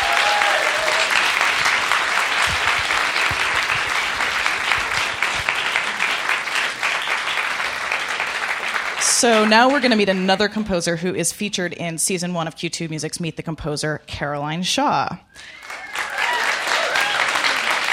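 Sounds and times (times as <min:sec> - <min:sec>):
audience applause: 0:00.0 - 0:10.5, 0:15.4 - 0:17.9
speech: 0:09.2 - 0:15.6.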